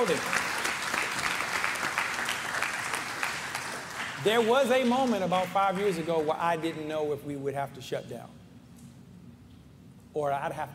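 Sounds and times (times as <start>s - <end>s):
speech: 0.0s - 0.6s, 4.2s - 8.4s, 10.1s - 10.7s
audience clapping: 0.0s - 6.8s.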